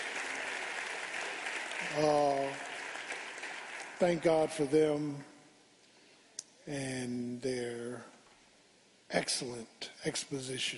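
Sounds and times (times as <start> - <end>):
crowd clapping: 0.0 - 5.0
speech: 1.8 - 2.7, 4.0 - 5.3, 6.6 - 8.1, 9.1 - 10.7.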